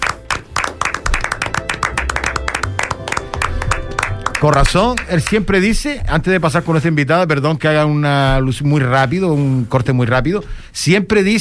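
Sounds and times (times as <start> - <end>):
applause: 0.0 - 5.6
speech: 4.4 - 11.3.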